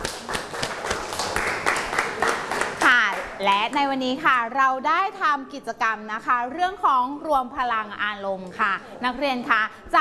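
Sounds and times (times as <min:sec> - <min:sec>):
audience applause for student representatives: 0:00.0 - 0:03.2
speech: 0:03.4 - 0:10.0.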